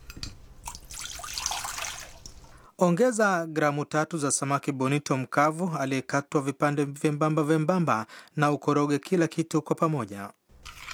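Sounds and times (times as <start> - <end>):
water drips: 0.0 - 2.7
one cup of water poured into a saucepan with soy sauce and sugar: 0.6 - 2.7
speech: 2.8 - 10.4.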